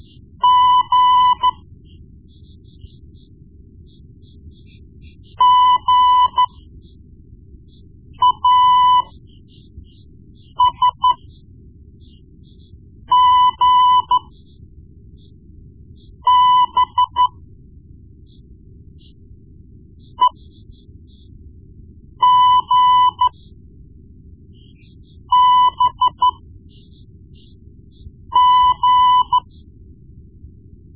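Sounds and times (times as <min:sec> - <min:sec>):
morse code beeps: 0:00.4 - 0:01.6, 0:05.4 - 0:06.6, 0:08.2 - 0:09.2, 0:10.5 - 0:11.3, 0:13.1 - 0:14.3, 0:16.2 - 0:17.3, 0:20.2 - 0:20.4, 0:22.2 - 0:23.4, 0:25.2 - 0:26.4, 0:28.3 - 0:29.6.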